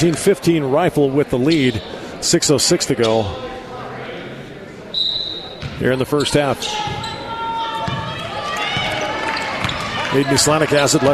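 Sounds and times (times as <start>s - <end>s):
speech: 0.0s - 3.6s, 5.8s - 7.1s, 10.1s - 11.1s
steady noise: 0.0s - 11.1s
basketball dribbled on a gymnasium court during a game: 5.6s - 5.8s, 7.8s - 10.1s.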